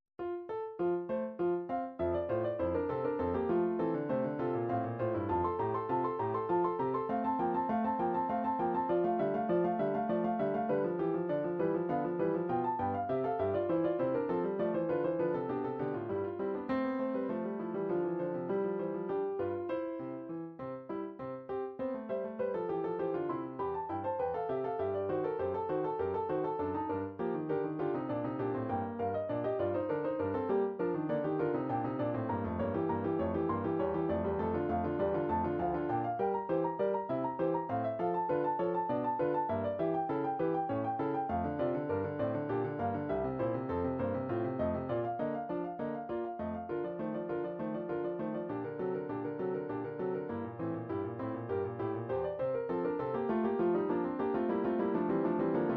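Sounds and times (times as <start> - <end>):
MIDI piano: 0.0 - 55.7.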